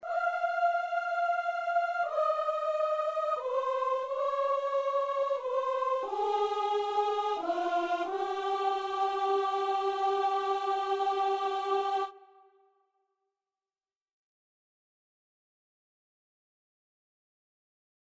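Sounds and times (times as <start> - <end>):
layered aah vocals: 0.0 - 12.5.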